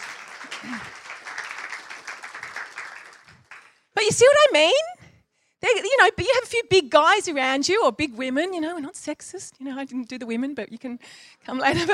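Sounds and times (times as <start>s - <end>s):
audience applause: 0.0s - 3.8s
speech: 0.6s - 1.0s, 4.0s - 4.9s, 5.6s - 11.9s.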